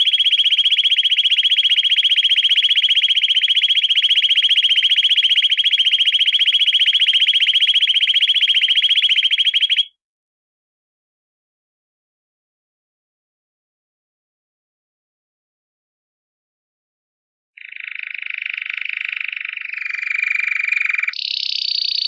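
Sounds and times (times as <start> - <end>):
canary giving rattling trill and high pulsed roll: 0.0 - 9.9, 17.6 - 22.0.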